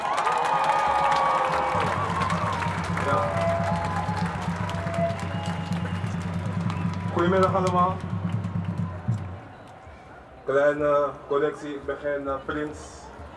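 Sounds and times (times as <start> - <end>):
crowd at a demonstration against racism and fascism applauding: 0.0 - 9.9
crowd cheering and shouting: 0.0 - 13.3
speech: 7.2 - 8.1, 10.5 - 13.0.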